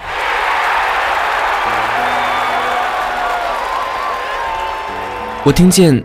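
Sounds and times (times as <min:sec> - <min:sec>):
applause: 0:00.0 - 0:05.9
crowd cheering in victory: 0:00.0 - 0:06.0
speech: 0:05.4 - 0:06.0.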